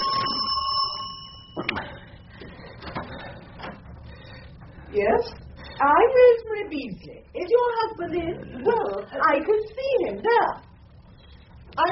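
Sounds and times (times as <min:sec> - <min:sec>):
front doorbell ringing: 0:00.0 - 0:02.0
speech: 0:05.0 - 0:10.6.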